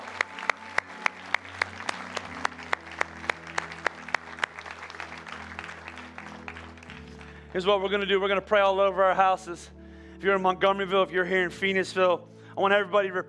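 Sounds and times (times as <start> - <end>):
audience applause: 0.0 - 7.6
speech: 7.6 - 13.2.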